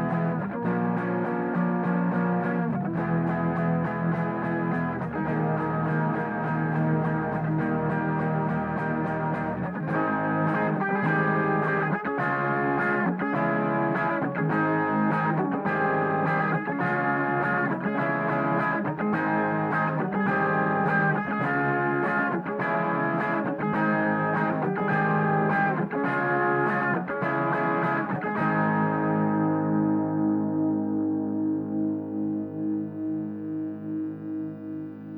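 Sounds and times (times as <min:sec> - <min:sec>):
guitar through bus effects: 0:00.0 - 0:35.1.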